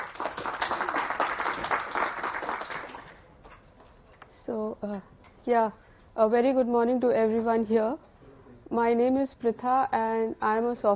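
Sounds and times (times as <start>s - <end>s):
audience applause for a speaker at a software conference talk: 0.0s - 3.2s
speech: 4.5s - 8.0s, 8.7s - 10.9s.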